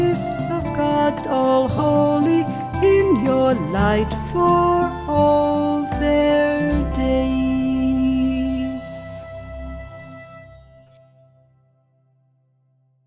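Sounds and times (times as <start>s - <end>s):
person singing vocal: 0.0s - 10.3s.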